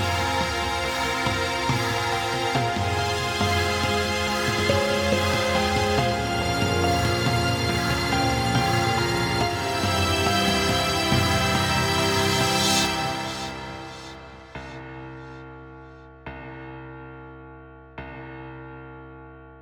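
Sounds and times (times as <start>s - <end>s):
horror game start screen theme music: 0.0s - 14.8s.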